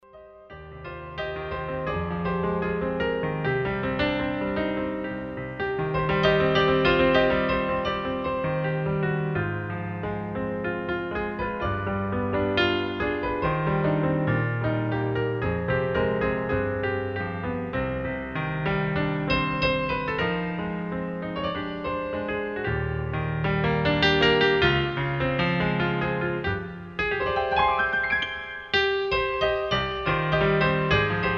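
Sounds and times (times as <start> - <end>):
solo piano: 0.0 - 31.3.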